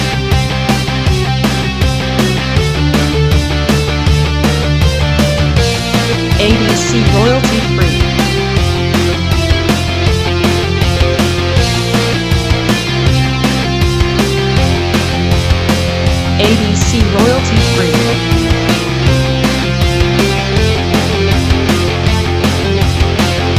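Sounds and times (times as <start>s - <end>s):
80s guitar instrumental: 0.0s - 23.5s.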